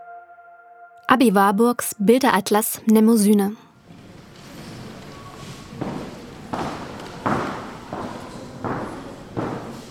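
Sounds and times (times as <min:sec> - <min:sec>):
speech: 0:01.1 - 0:03.6
slow footsteps in echoing museum hall: 0:03.9 - 0:09.8.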